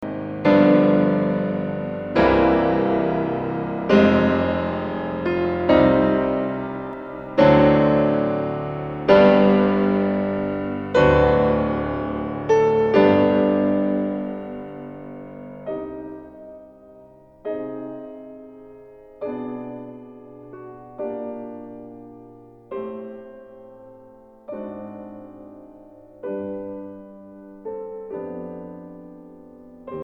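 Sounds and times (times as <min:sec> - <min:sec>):
piano prelude in C minor: 0:00.0 - 0:30.0.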